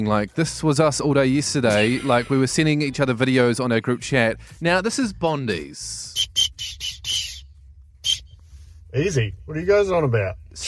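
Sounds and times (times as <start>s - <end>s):
speech: 0.0s - 6.4s, 8.9s - 10.6s
hockey whistle blown: 6.1s - 8.4s.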